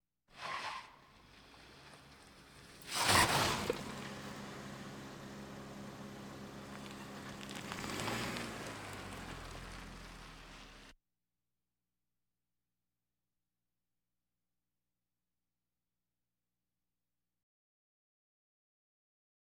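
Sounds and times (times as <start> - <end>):
various automobiles: 0.4 - 11.0.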